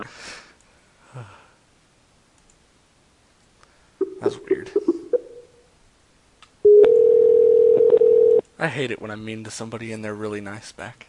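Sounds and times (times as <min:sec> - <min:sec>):
speech: 0:04.2 - 0:04.8, 0:08.6 - 0:11.0
short telephone tone after a call is hung up: 0:06.7 - 0:08.4.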